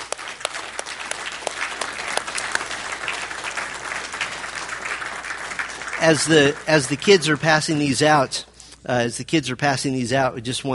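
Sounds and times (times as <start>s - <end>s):
audience applause: 0.0s - 7.6s
speech: 6.0s - 10.7s.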